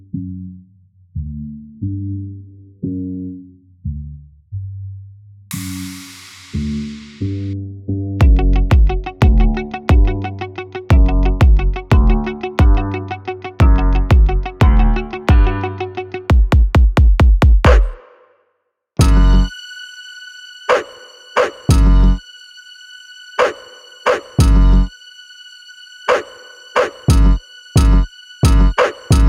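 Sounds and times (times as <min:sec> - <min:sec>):
urban underscore music: 0:05.5 - 0:07.6, 0:08.2 - 0:18.2, 0:19.0 - 0:19.5, 0:20.7 - 0:22.2, 0:23.4 - 0:24.9, 0:26.0 - 0:29.2.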